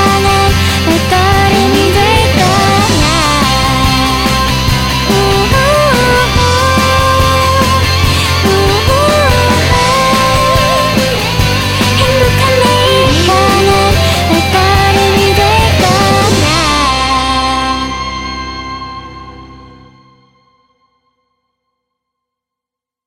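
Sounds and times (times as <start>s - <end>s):
vocal: 0.0s - 18.2s.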